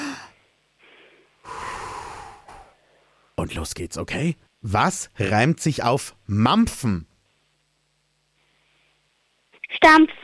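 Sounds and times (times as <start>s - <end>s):
deep breath in and out: 0.0s - 3.4s
speech: 3.4s - 7.1s, 9.8s - 10.2s.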